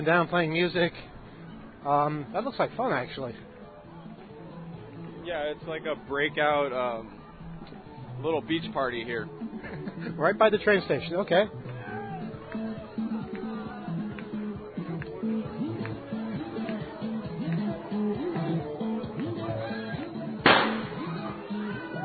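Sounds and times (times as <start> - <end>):
speech: 0.0 - 1.1, 1.8 - 3.5, 5.3 - 7.2, 8.2 - 11.6
crowd chatter: 3.4 - 22.0
laughter: 9.4 - 10.4
firework bang: 20.4 - 21.0.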